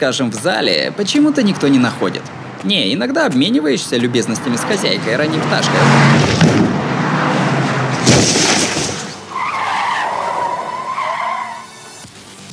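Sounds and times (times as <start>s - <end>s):
speech: 0.0s - 6.6s, 8.2s - 8.5s
car engine roaring: 0.6s - 12.0s
tire squeal: 5.6s - 12.1s
car crashing into someone: 7.7s - 9.4s.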